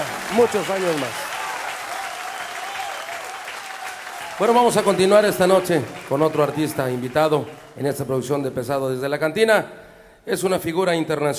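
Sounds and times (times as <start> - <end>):
live concert audience applause at a cantina-themed show in Nuevo León, Mexico: 0.0 - 8.0
speech: 0.3 - 1.2, 4.4 - 11.3.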